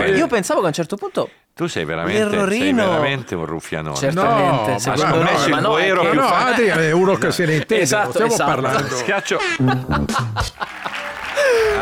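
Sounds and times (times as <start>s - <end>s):
speech: 0.0s - 10.8s
cheering and laughter: 8.7s - 11.8s
canned applause: 10.3s - 11.8s.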